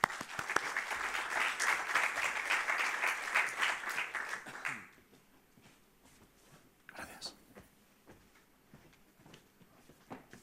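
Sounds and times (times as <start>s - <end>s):
audience applause: 0.0s - 5.0s.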